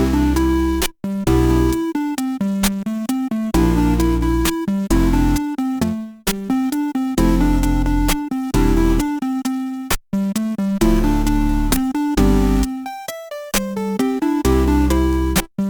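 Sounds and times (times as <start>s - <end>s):
chiptune music: 0.0s - 15.6s.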